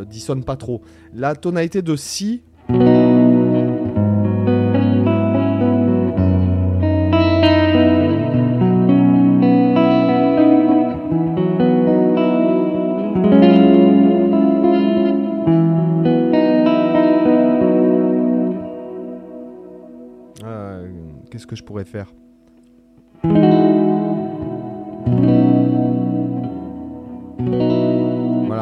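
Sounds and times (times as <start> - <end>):
speech: 0.0 - 3.2
electric guitar chords with effects: 2.4 - 28.6.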